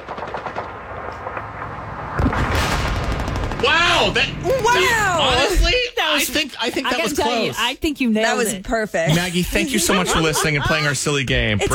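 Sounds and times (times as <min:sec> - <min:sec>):
World War II battle sound effect of machine-gun fire: 0:00.0 - 0:04.4
speech: 0:03.6 - 0:11.7
laughter: 0:09.1 - 0:11.7.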